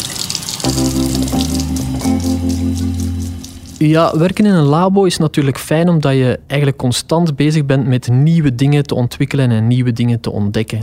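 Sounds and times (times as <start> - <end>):
water running from a tap while hands are washed: 0.0 - 4.4
speech: 3.8 - 10.8.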